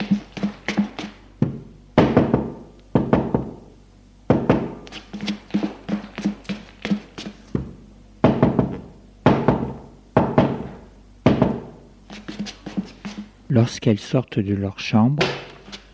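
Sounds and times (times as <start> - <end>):
knocking on bedroom doors: 0.0 - 3.7, 4.3 - 4.8, 5.5 - 11.8
speech: 13.6 - 15.5.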